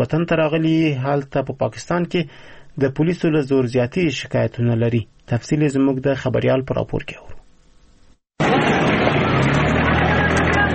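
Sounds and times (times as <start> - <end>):
speech: 0.0 - 7.4
laden trucks and Datsun vehicles on the Spin Boldak-Chaman road in Kandahar: 8.4 - 10.7.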